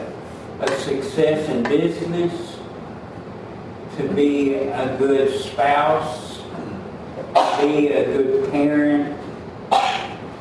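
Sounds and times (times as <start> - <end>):
speech: 0.6 - 2.6, 4.0 - 6.2, 7.6 - 9.1
sneeze: 7.3 - 7.8, 9.7 - 10.2.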